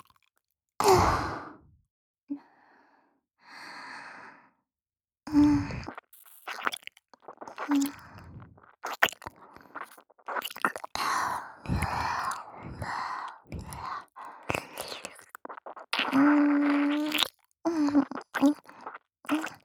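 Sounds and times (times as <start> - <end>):
ear licking: 5.7 - 17.3, 17.9 - 19.6.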